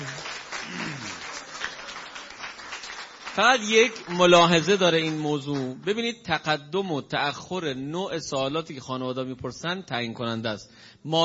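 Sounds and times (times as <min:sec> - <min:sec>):
audience applause at a talk: 0:00.0 - 0:05.7
speech: 0:03.4 - 0:11.2.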